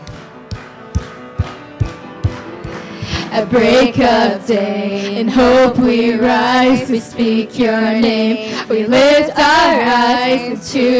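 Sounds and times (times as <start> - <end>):
audience clapping along: 0.0 - 4.2
speech: 3.3 - 10.9.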